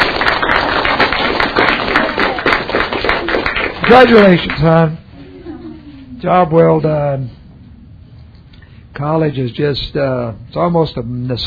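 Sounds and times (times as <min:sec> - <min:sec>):
audience clapping for a college graduate: 0:00.0 - 0:05.0
speech: 0:03.9 - 0:05.0, 0:06.2 - 0:07.4, 0:09.0 - 0:11.4.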